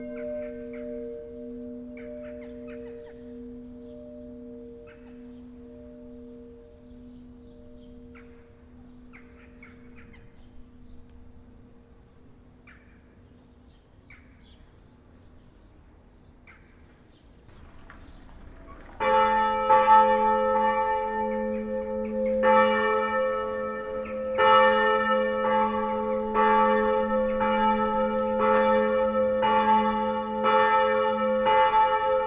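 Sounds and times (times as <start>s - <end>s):
bells rung by a bell ringer: 0.0s - 9.1s, 17.6s - 32.2s.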